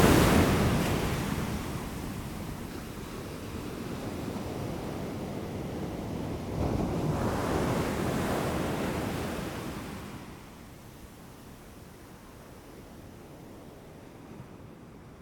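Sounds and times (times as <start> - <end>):
ocean waves: 0.0 - 10.5.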